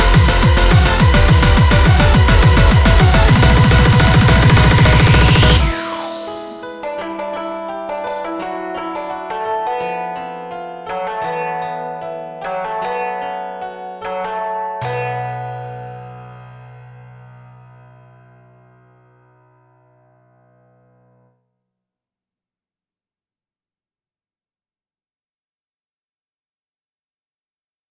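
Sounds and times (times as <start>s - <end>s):
instrumental music at 210 bpm: 0.0s - 20.2s.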